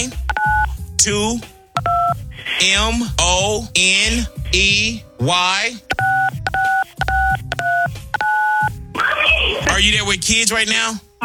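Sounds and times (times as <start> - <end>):
telephone keypad dual-tone beeps entering a key code: 0.2 - 0.7, 1.8 - 2.2, 5.9 - 8.7
speech: 1.0 - 1.5, 2.6 - 6.0, 9.8 - 11.2.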